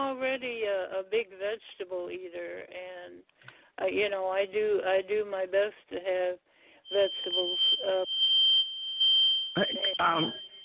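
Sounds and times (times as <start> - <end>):
speech: 0.0 - 8.2, 9.6 - 10.5
fire drill alarm: 6.8 - 10.6.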